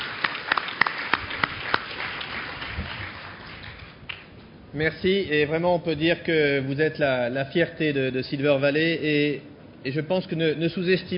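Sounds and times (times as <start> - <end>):
scattered audience applause: 0.0 - 4.4
speech: 4.7 - 11.1.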